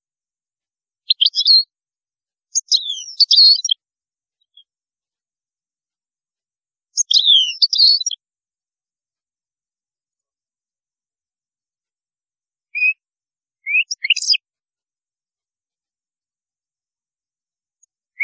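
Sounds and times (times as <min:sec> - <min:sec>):
European goldfinch song: 0:01.1 - 0:01.7, 0:02.5 - 0:03.8, 0:07.0 - 0:08.2, 0:12.7 - 0:13.0, 0:13.6 - 0:14.4.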